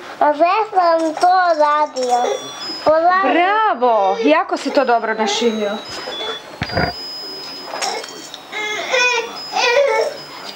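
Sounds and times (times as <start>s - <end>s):
speech: 0.2s - 7.0s
crying and sobbing: 3.2s - 5.8s, 7.9s - 10.3s.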